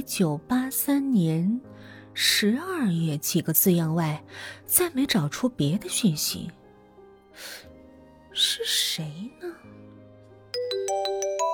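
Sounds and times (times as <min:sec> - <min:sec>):
speech: 0:00.0 - 0:06.6, 0:07.4 - 0:07.7, 0:08.4 - 0:09.8
telephone electronic ringtone: 0:10.6 - 0:11.5.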